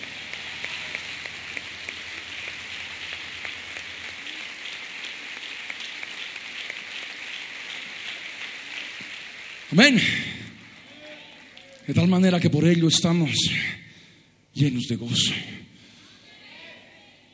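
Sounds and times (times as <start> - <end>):
audience applauding: 0.0 - 11.8
speech: 9.7 - 10.3, 11.9 - 13.8, 14.6 - 15.6.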